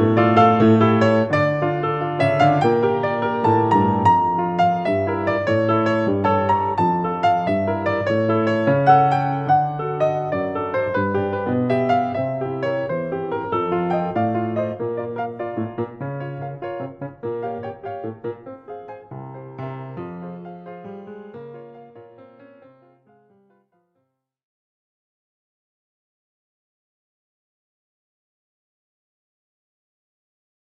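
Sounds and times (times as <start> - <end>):
piano piece in G minor: 0.0 - 23.8.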